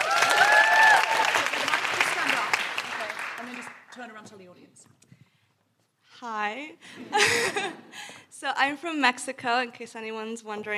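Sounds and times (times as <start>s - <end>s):
audience round of applause for a volunteer at a live event: 0.0s - 4.0s
speech: 6.2s - 7.5s, 8.4s - 10.7s.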